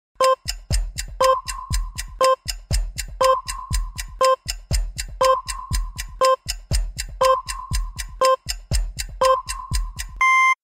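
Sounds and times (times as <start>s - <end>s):
minimal ten-second countdown: 0.2s - 10.6s.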